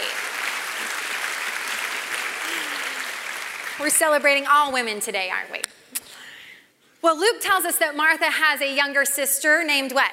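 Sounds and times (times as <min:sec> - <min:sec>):
audience clapping: 0:00.0 - 0:04.4
speech: 0:03.8 - 0:05.8, 0:07.0 - 0:10.1.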